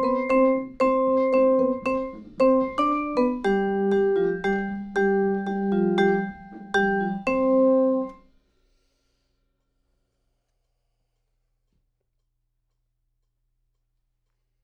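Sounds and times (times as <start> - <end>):
vibraphone: 0.0 - 8.2.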